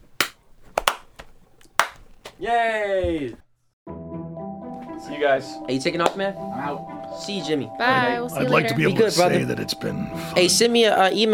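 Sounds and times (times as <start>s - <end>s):
hands clapping: 0.0s - 2.4s
speech: 2.4s - 3.4s, 5.1s - 11.3s.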